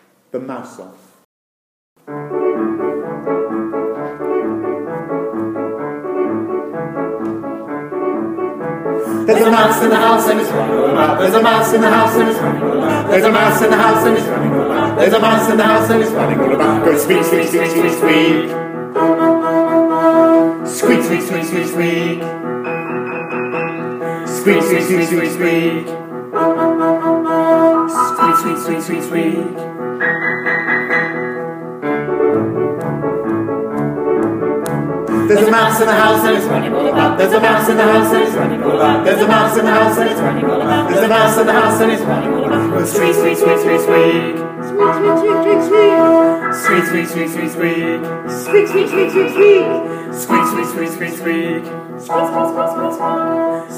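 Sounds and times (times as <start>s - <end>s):
song: 2.0s - 53.7s.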